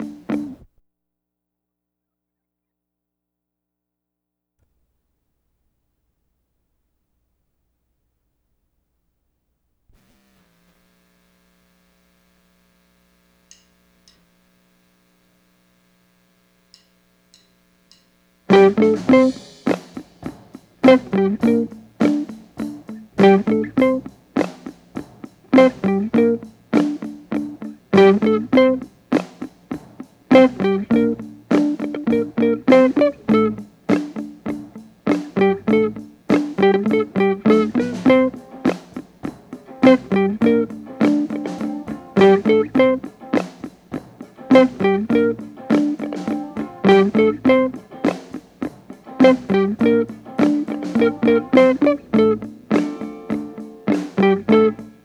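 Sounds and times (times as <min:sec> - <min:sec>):
guitar: 0:00.0 - 0:00.7, 0:18.5 - 0:55.0.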